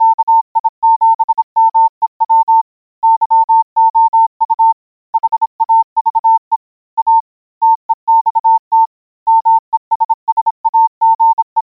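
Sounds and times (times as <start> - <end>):
morse code beeps: 0.0 - 11.7.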